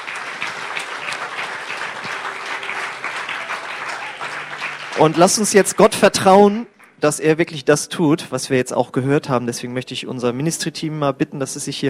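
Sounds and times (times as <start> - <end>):
audience applause: 0.0 - 7.0
speech: 5.0 - 11.8.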